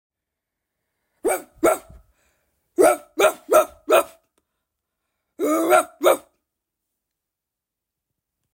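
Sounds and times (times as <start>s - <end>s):
dog barking: 1.2s - 2.0s, 2.8s - 4.2s, 5.4s - 6.4s.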